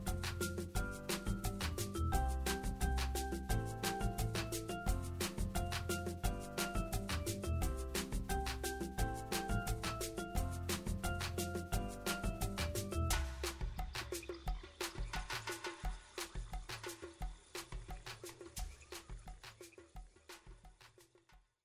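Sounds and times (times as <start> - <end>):
background music intro: 0.0 - 21.1.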